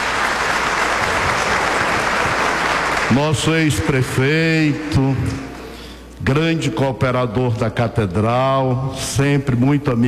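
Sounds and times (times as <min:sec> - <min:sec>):
crowd applause: 0:00.0 - 0:05.6
speech: 0:03.1 - 0:05.5, 0:06.2 - 0:10.0.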